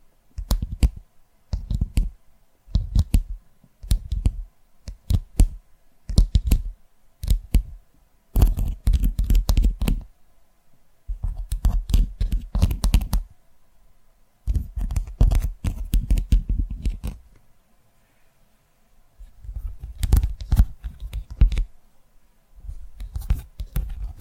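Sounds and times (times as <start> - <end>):
ASMR fingertip tapping: 0.4 - 7.8, 8.4 - 10.1, 11.1 - 13.3, 14.5 - 17.3, 19.4 - 21.7, 22.7 - 24.2.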